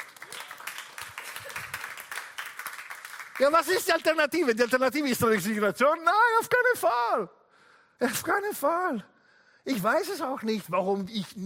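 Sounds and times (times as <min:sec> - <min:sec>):
audience applause: 0:00.0 - 0:04.8
speech: 0:03.4 - 0:07.4, 0:08.0 - 0:11.4.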